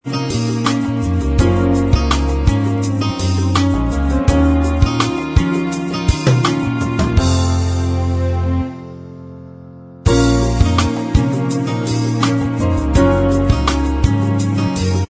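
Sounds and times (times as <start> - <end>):
instrumental music: 0.0 - 15.0.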